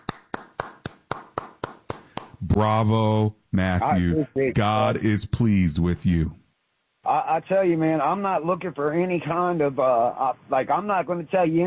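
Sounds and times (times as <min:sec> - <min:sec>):
hands clapping: 0:00.0 - 0:02.4
speech: 0:02.4 - 0:06.4, 0:07.1 - 0:11.6.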